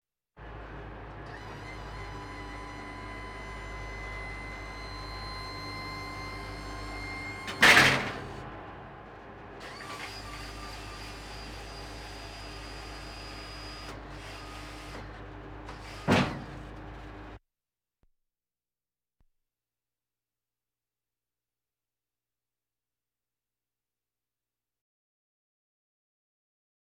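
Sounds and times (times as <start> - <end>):
military vehicles: 0.4 - 17.4.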